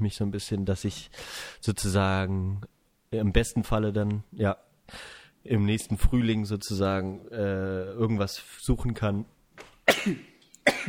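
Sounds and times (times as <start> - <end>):
speech: 0.0 - 9.4, 10.0 - 10.8
sneeze: 9.9 - 10.8.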